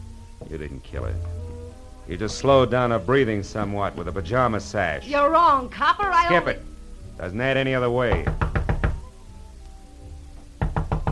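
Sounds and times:
speech: 0:00.5 - 0:01.5, 0:02.1 - 0:08.4
knocking on a door: 0:08.1 - 0:09.1, 0:10.4 - 0:11.1.

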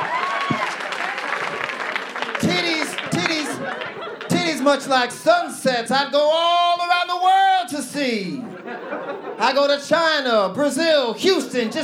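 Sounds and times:
audience hand clapping: 0:00.0 - 0:04.7
laughter: 0:00.3 - 0:05.8, 0:07.8 - 0:10.0, 0:11.3 - 0:11.8
speech: 0:04.7 - 0:06.6, 0:07.7 - 0:08.5, 0:09.4 - 0:11.8.

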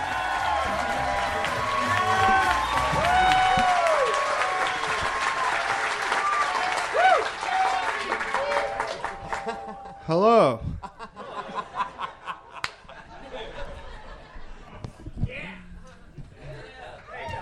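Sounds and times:
audience applause: 0:00.0 - 0:10.0
laughter: 0:09.1 - 0:14.8
speech: 0:10.1 - 0:10.7.

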